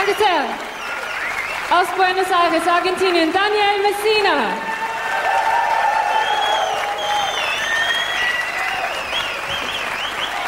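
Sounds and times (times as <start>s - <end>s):
speech: 0.0s - 0.7s, 1.7s - 4.7s
audience applause: 0.0s - 10.4s.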